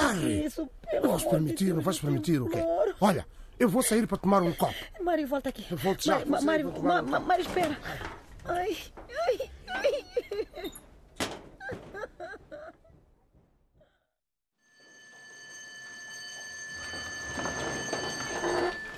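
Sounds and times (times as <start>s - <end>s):
laughter: 0.0s - 3.2s, 5.8s - 8.2s, 9.1s - 10.8s
speech: 0.5s - 10.8s
school bell ringing: 14.6s - 18.9s.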